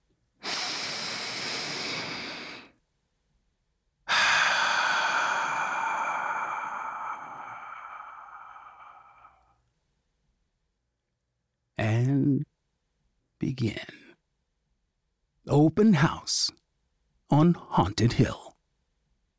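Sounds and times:
deep breath: 0.4 - 2.8, 4.1 - 9.7
speech: 13.5 - 14.0, 15.5 - 16.6, 17.3 - 18.4.

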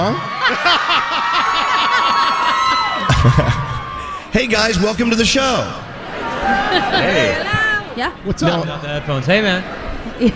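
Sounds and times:
high whoops and shouts: 0.0 - 4.3
large crowd cheering: 0.0 - 10.3
laughter: 0.2 - 4.3, 5.9 - 8.0, 9.6 - 10.3
speech: 3.2 - 3.6, 4.4 - 5.8, 6.5 - 10.3.

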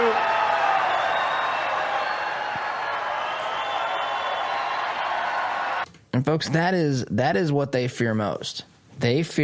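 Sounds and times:
conference crowd cheering and applauding: 0.0 - 5.8
speech: 6.2 - 9.4.

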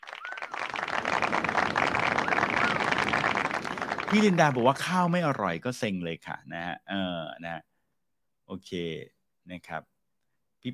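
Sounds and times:
whoops or whistles: 0.0 - 0.7, 2.0 - 3.0
crowd clapping: 0.0 - 5.0
speech: 4.1 - 7.7, 8.5 - 9.9.

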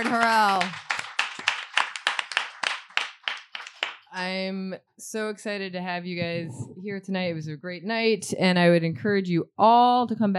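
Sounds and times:
speech: 0.0 - 0.8, 4.2 - 10.3
audience applause: 0.0 - 4.1.

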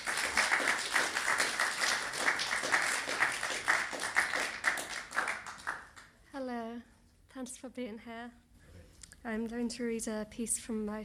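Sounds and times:
audience clapping welcoming a reader to a literary reading: 0.0 - 6.2
speech: 7.4 - 8.5, 9.2 - 11.0.

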